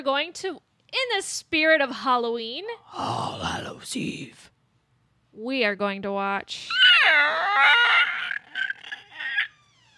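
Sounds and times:
speech: 0.0s - 4.5s, 5.4s - 8.1s
voice imitating a pterodactyl screech: 6.7s - 9.9s.

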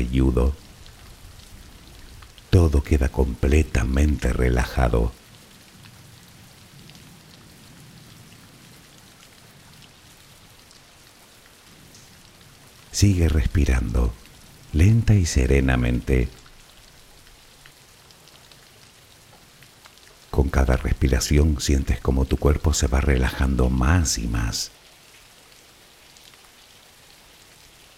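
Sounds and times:
person speaking calmly: 0.0s - 0.6s, 2.5s - 5.2s, 12.9s - 16.4s, 20.3s - 24.7s
speech: 0.0s - 0.6s, 2.5s - 5.2s, 13.0s - 16.4s, 20.5s - 24.8s
rain falling: 0.0s - 27.9s.

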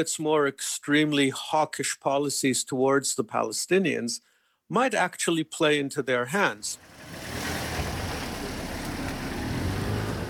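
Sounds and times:
speech: 0.0s - 7.5s
cars passing in narrow streets: 6.8s - 10.2s.

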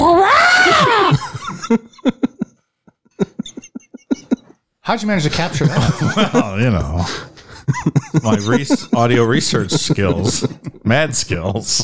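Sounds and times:
loud dinosaur-like screech: 0.0s - 1.1s
laughter: 0.6s - 11.8s
speech: 4.9s - 11.8s.

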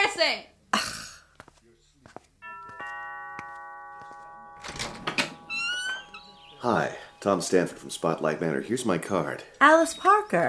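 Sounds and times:
speech: 0.2s - 0.9s, 6.6s - 10.4s
doorbell chiming: 2.4s - 8.6s.

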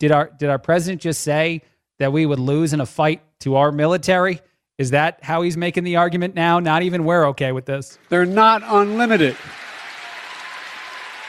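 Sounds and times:
speech: 0.0s - 9.6s
muted audience applause: 8.1s - 11.2s.

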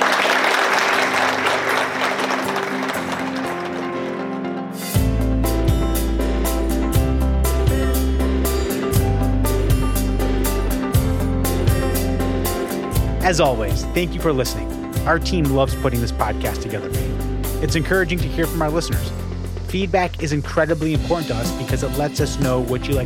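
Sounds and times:
audience applause: 0.0s - 4.6s
upbeat music with a thumping bass line and crisp percussion: 4.2s - 23.0s
speech: 13.3s - 23.0s.

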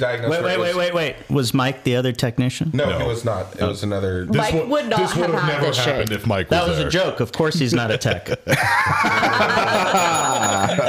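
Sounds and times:
speech: 0.0s - 10.8s
laughter: 4.4s - 6.0s, 7.4s - 10.8s
bell ringing: 9.4s - 10.8s.

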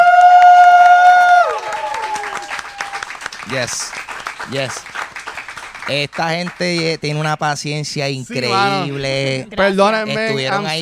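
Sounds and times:
live audience cheering: 0.0s - 4.8s
live audience applause: 0.0s - 7.3s
speech: 3.6s - 4.9s, 5.9s - 10.8s.

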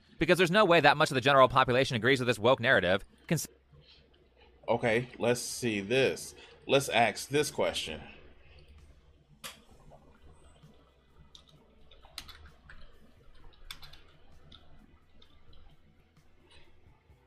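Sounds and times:
low hum: 0.0s - 17.2s
speech: 0.2s - 3.6s, 4.7s - 8.2s
typing on a computer keyboard: 11.4s - 12.9s, 13.5s - 14.6s.

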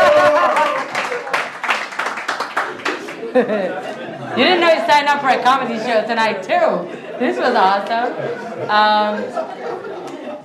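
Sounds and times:
laughter: 0.0s - 1.3s, 2.8s - 4.9s, 6.7s - 10.4s
audience clapping: 0.0s - 3.4s
speech: 3.4s - 9.9s.

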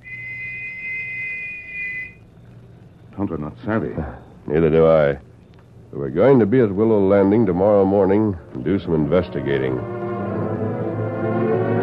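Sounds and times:
long high-pitched whistle: 0.0s - 2.2s
low hum: 0.0s - 11.8s
speech: 3.2s - 5.3s, 6.0s - 10.0s.

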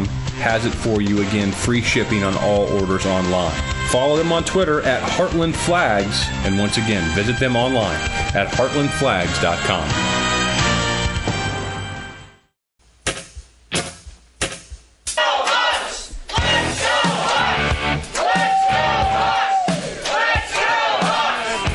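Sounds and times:
rock music: 0.0s - 12.2s, 16.3s - 21.7s
speech: 0.4s - 10.2s
stadium crowd chanting: 15.2s - 21.7s.

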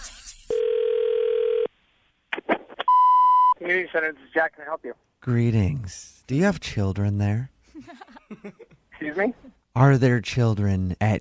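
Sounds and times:
telephone dial tone: 0.5s - 1.7s
speech: 3.7s - 11.1s
laughter: 7.7s - 9.4s.

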